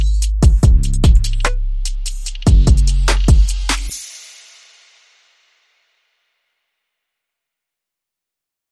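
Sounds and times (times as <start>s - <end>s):
bass: 0.0s - 4.0s
drums: 0.0s - 5.9s.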